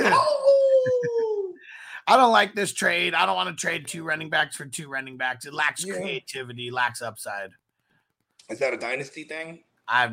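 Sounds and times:
person imitating a wolf howl: 0.0 - 1.6
speech: 2.1 - 7.6, 8.5 - 10.1.

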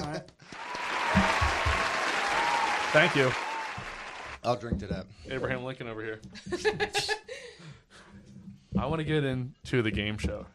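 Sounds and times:
audience applause: 0.5 - 4.4
speech: 2.9 - 3.5, 4.4 - 7.2, 8.8 - 10.5.

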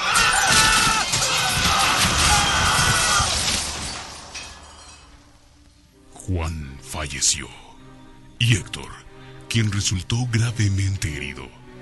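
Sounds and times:
car overturning and crashing: 0.1 - 5.1
glass shattering: 0.1 - 5.4
speech: 7.0 - 7.7, 8.4 - 11.6.

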